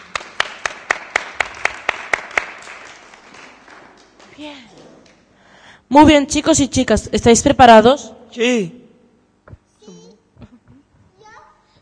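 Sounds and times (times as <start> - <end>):
audience applause: 0.0 - 5.3
speech: 4.4 - 4.9, 5.9 - 8.8.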